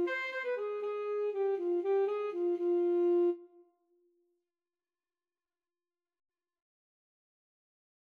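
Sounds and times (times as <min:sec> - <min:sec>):
saxophone dance tune: 0:00.0 - 0:03.5.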